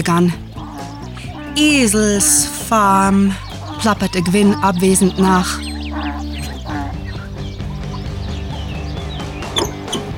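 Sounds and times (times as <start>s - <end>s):
speech: 0.0s - 0.5s, 1.6s - 5.7s
wavering high-pitched metallic squeals: 9.6s - 10.1s.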